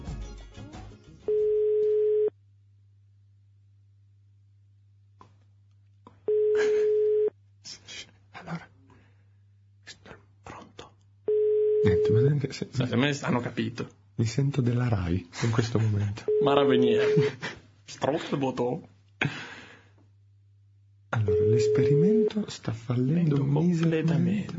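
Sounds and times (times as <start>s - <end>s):
telephone call ringing tone: 1.3s - 2.3s, 6.3s - 7.3s, 11.3s - 12.2s, 16.3s - 17.2s, 21.2s - 22.3s
speech: 12.4s - 19.4s, 21.6s - 24.5s.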